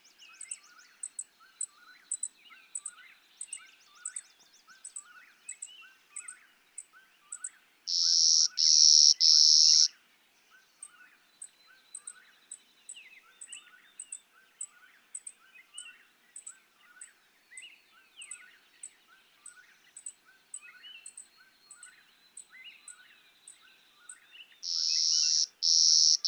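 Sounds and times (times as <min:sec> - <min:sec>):
clay-colored sparrow buzzy song: 0:00.0 - 0:26.2.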